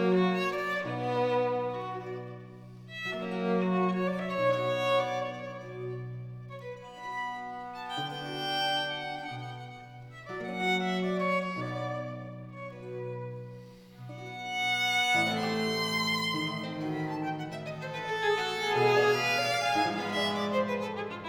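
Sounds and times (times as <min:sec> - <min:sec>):
two violins, strings and continuo in G major, andante: 0:00.0 - 0:21.2.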